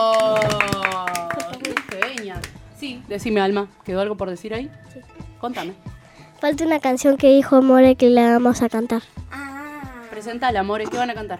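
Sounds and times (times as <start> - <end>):
audience clapping: 0.0 - 2.6
speech: 3.1 - 9.2, 10.2 - 11.3.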